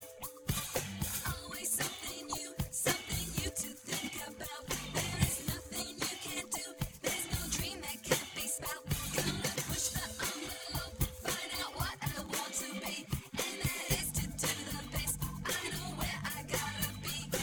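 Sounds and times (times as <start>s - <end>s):
percussion: 0.0s - 17.4s.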